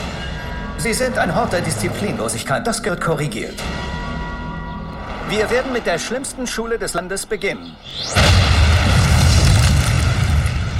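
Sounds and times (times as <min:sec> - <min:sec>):
speech: 0:00.8 - 0:04.0, 0:05.3 - 0:08.9
explosion blowing up doors: 0:07.9 - 0:10.7.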